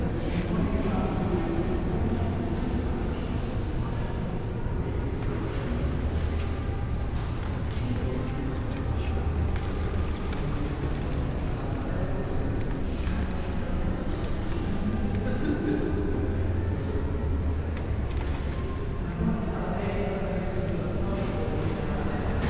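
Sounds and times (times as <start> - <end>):
murmur of many low voices inside Bath Abbey: 0.0 - 22.4.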